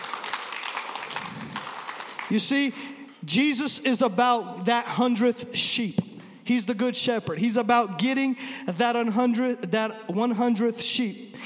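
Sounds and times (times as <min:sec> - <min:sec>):
audience clapping: 0:00.0 - 0:02.7
speech: 0:02.3 - 0:11.4.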